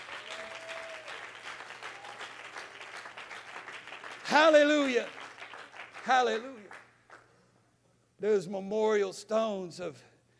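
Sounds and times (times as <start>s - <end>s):
audience clapping: 0.0s - 7.4s
speech: 4.3s - 5.2s, 6.0s - 6.8s, 8.2s - 10.1s.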